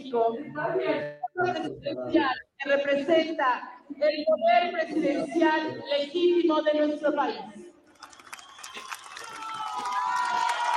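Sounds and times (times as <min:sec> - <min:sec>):
speech: 0:00.1 - 0:07.7
crowd applauding: 0:07.9 - 0:10.7.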